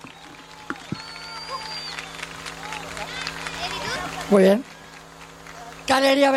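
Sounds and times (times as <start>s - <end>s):
audience applauding: 0.0s - 6.3s
crowd noise: 0.0s - 6.3s
low hum: 0.0s - 6.3s
thin whistle-like tones: 0.1s - 2.3s
speech: 4.3s - 4.7s, 5.9s - 6.3s.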